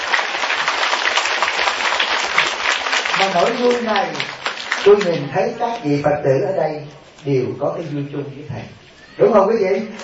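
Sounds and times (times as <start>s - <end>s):
audience applause: 0.0s - 5.3s
speech: 3.2s - 10.0s.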